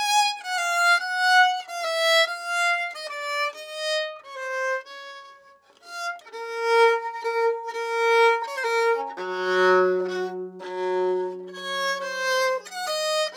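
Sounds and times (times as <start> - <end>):
Baroque bow on string instrument: 0.0 - 13.3.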